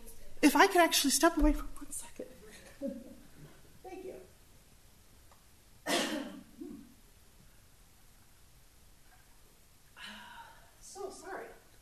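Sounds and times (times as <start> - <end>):
speech: 0.4 - 1.7, 2.8 - 3.0
speaker at a planning hearing coughing, choking on air: 5.9 - 6.8.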